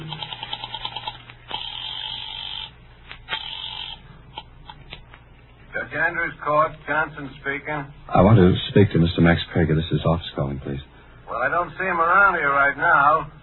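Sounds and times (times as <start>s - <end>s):
rotary telephone dialing at an office switchboard: 0.0s - 2.7s
speech: 6.0s - 13.4s.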